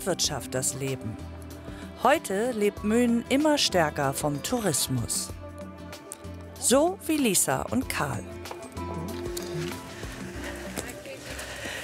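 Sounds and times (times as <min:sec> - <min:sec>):
speech: 0:00.0 - 0:05.4, 0:06.6 - 0:08.6
horse hooves walking: 0:08.4 - 0:11.8.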